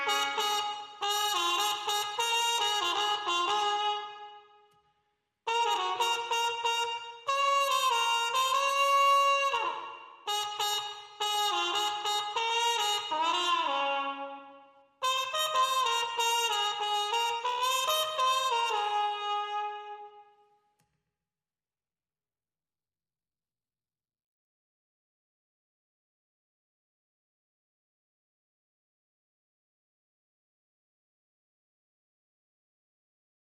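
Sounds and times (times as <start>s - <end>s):
trumpet: 0.0s - 4.8s, 5.5s - 20.6s.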